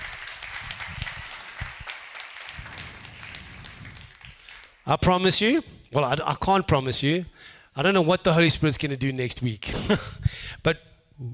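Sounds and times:
round of applause: 0.0 - 4.9
speech: 4.9 - 11.3.

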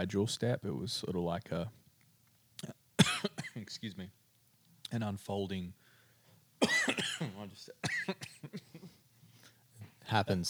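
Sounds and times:
speech: 0.0 - 1.8, 3.6 - 4.2, 4.9 - 5.8, 6.6 - 8.6, 10.1 - 10.4
person clearing throat: 2.6 - 3.7, 6.6 - 8.9
person coughing after coffee went down the wrong pipe: 2.6 - 3.7, 6.6 - 9.0.

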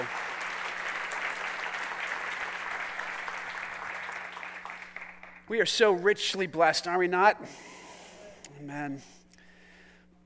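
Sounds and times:
sizable crowd clapping: 0.0 - 5.7
speech: 5.5 - 7.8, 8.6 - 9.2.

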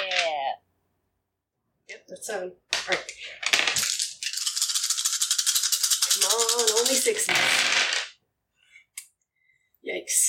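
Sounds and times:
dice rolling: 0.0 - 0.4, 2.7 - 8.2
speech: 2.1 - 4.0, 6.2 - 8.0, 9.8 - 10.2.

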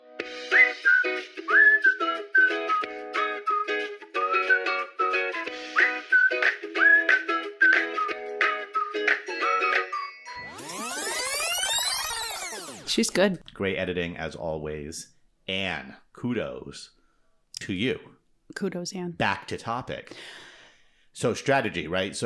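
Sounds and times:
person whistling a TV show's theme tune: 0.2 - 10.4
swept tone: 10.3 - 12.9
speech: 13.0 - 17.0, 17.6 - 20.5, 21.2 - 22.2.

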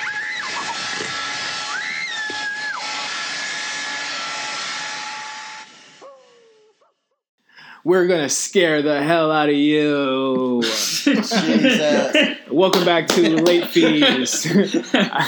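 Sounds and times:
power drill whirring: 0.1 - 6.0
speech: 7.9 - 15.2
laughter: 10.1 - 15.2.

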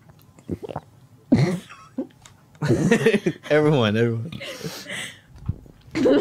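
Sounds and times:
loud swallowing gulps: 0.0 - 1.0
speech: 0.5 - 0.9, 2.7 - 4.8.

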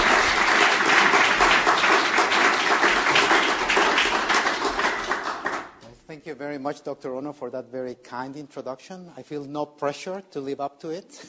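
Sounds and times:
audience applause: 0.0 - 5.8
speech: 6.4 - 11.2.

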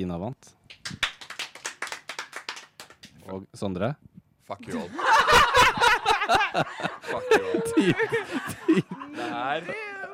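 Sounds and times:
speech: 0.0 - 1.0, 3.2 - 9.8
small group clapping to vote: 0.7 - 3.3
laughter: 4.7 - 10.1.

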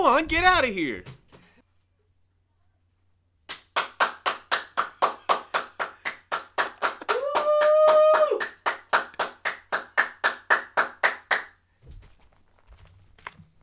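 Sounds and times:
speech: 0.0 - 1.2
person clapping for the NHS outdoors: 3.5 - 11.6
person wooing: 7.1 - 8.6.

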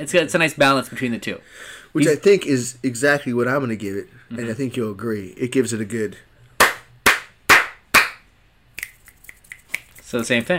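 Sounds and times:
speech: 0.0 - 6.3, 10.1 - 10.5
loud sharp hand claps: 6.6 - 10.2
quieter crisp finger snaps: 7.6 - 10.2.

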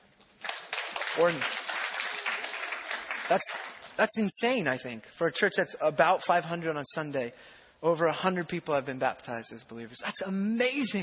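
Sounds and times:
church audience applause: 0.4 - 4.0
speech: 1.2 - 1.6, 3.3 - 11.0.

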